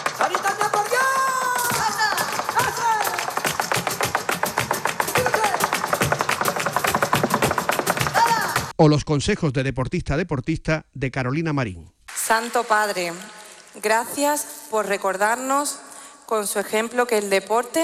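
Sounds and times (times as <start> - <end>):
flamenco heel tapping footwork: 0.0 - 8.8
speech: 8.8 - 17.8.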